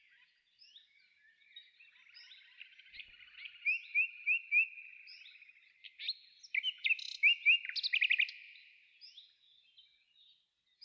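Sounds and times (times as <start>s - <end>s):
birds: 0.0s - 10.8s.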